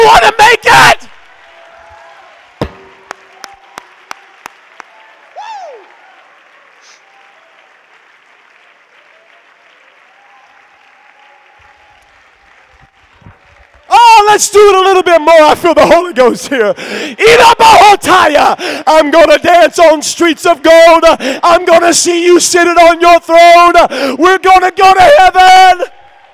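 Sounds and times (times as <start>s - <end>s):
speech: 0.0s - 1.1s, 14.4s - 26.0s
crowd noise: 0.0s - 14.2s
audience clapping: 1.3s - 13.9s.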